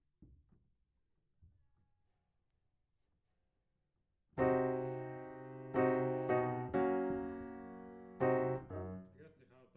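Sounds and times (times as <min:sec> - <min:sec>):
piano: 0:04.4 - 0:09.2.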